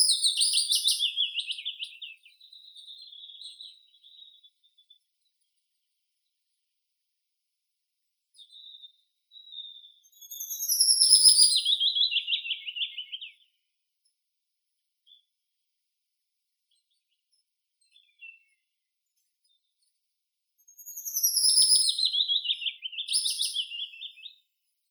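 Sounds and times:
willow warbler Phylloscopus trochilus: 0.0 - 5.0, 8.4 - 13.4, 20.7 - 24.4.

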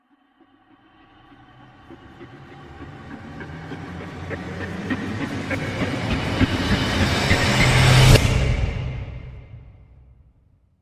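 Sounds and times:
switchblade riser sound effects: 1.4 - 9.9.

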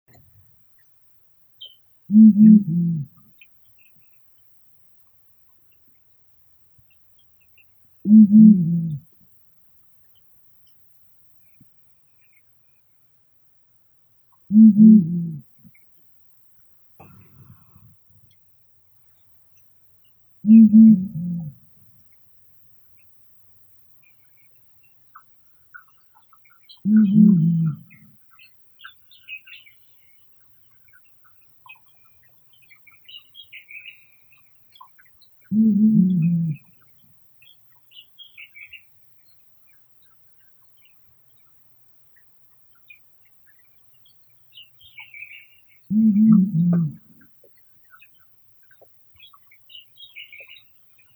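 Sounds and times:
Bubo blakistoni fish owl: 2.1 - 3.2, 8.0 - 9.1, 14.5 - 15.6, 20.5 - 21.6, 26.8 - 28.1, 35.5 - 36.8, 45.9 - 47.3.

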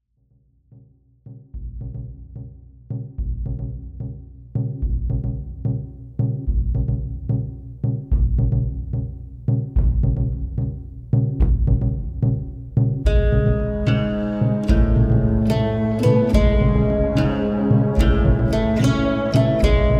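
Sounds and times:
instrumental theme music: 4.7 - 19.9.

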